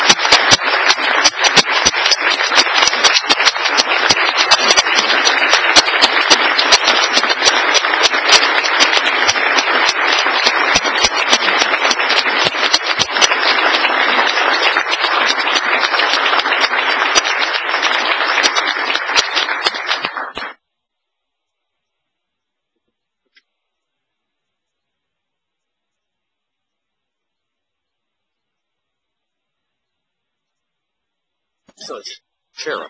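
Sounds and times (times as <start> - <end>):
crowd applause for honored officers: 0.0 - 20.6.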